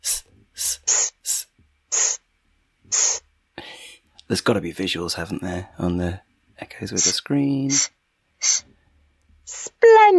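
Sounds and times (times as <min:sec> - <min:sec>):
person hissing sss letter sound: 0:00.0 - 0:02.2, 0:02.9 - 0:03.8, 0:07.0 - 0:08.7, 0:09.5 - 0:09.8
speech: 0:04.3 - 0:08.7.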